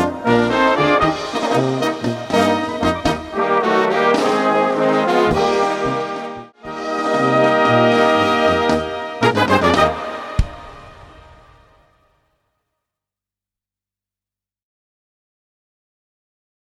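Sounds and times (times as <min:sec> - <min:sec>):
polka music: 0:00.0 - 0:12.0.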